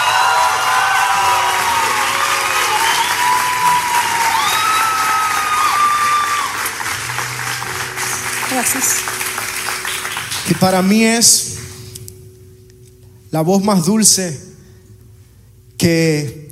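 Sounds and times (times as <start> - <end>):
crowd cheering and whistling: 0.0 - 10.6
audience applause: 0.0 - 11.0
speech: 8.6 - 9.0, 10.5 - 11.5, 13.3 - 14.5, 15.8 - 16.4.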